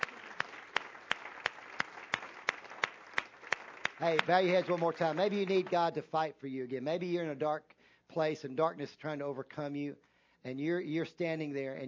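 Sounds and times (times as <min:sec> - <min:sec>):
audience applause: 0:00.0 - 0:05.9
sharp evenly spaced louder claps in a steady rhythm: 0:00.0 - 0:06.0
speech: 0:04.0 - 0:11.8.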